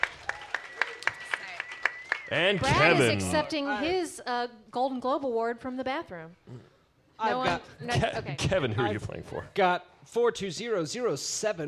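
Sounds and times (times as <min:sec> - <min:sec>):
audience applause: 0:00.0 - 0:03.3
speech: 0:02.3 - 0:11.6.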